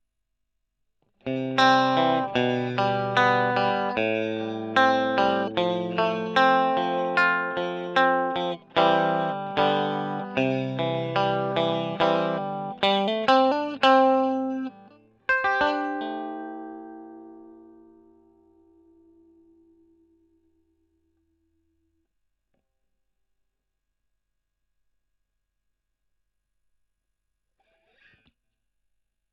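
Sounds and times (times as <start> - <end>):
electric guitar: 1.2 - 20.5.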